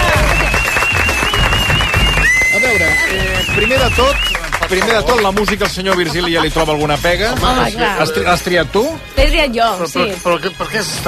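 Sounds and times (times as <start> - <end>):
audience applause: 0.0 - 6.9
speech: 4.0 - 11.0
laughter: 4.4 - 7.9.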